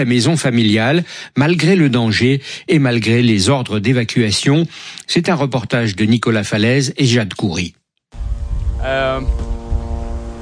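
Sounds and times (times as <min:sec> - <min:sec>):
speech: 0:00.0 - 0:07.8, 0:08.8 - 0:09.5
Israeli military drone buzzing in the sky over Beirut: 0:08.2 - 0:10.4.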